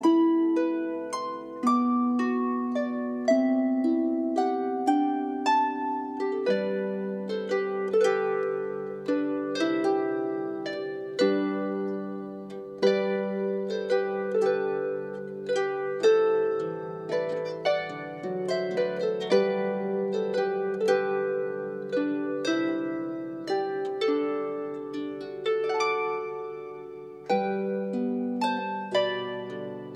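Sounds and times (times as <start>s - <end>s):
Celtic lullaby: 0.0s - 29.9s.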